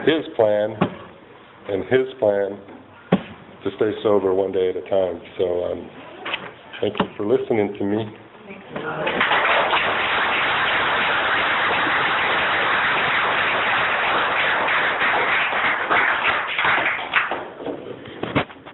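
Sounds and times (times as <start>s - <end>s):
speech: 0.0s - 0.9s, 1.6s - 2.8s, 3.6s - 6.0s, 6.8s - 9.3s
audience applause: 9.1s - 17.5s.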